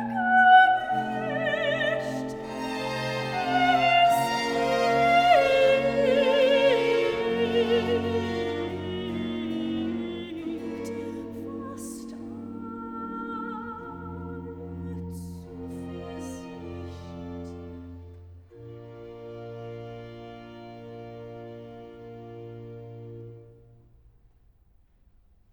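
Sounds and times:
soprano singing recitative: 0:00.0 - 0:17.2.

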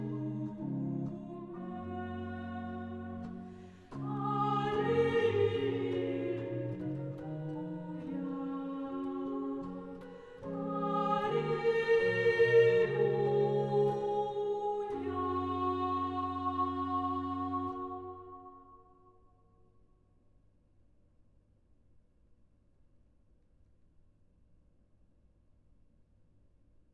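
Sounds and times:
organ chorale: 0:00.0 - 0:18.8.

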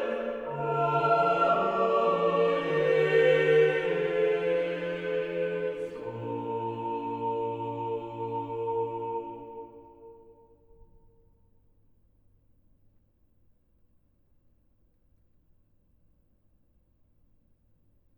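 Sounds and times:
organ chorale: 0:00.0 - 0:10.1.

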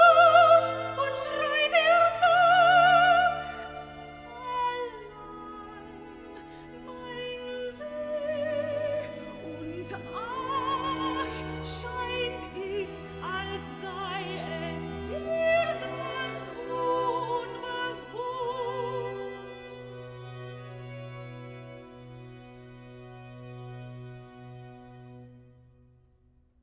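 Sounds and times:
soprano singing recitative: 0:00.0 - 0:20.2.

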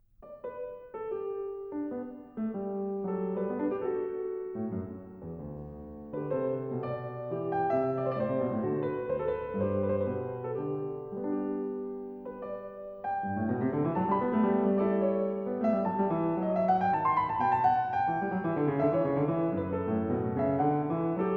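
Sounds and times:
loure on piano: 0:00.0 - 0:21.3.

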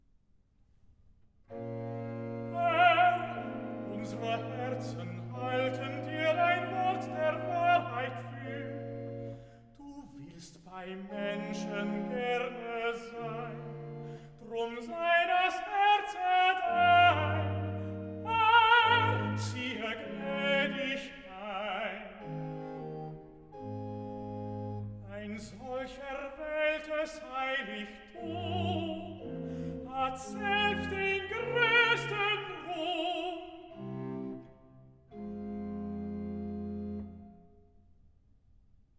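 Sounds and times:
person singing recitative: 0:02.5 - 0:08.8, 0:09.8 - 0:22.3, 0:25.0 - 0:33.9.

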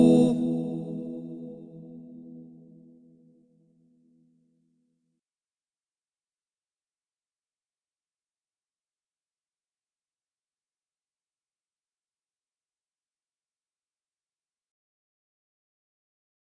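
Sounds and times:
crystal singing bowls in E major: 0:00.0 - 0:02.0.

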